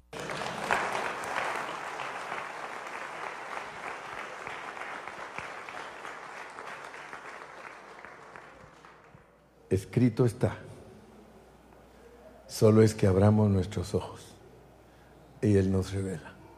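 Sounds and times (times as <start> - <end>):
audience clapping: 0.0 - 9.4
speech: 9.7 - 10.7, 12.6 - 14.3, 15.4 - 16.3.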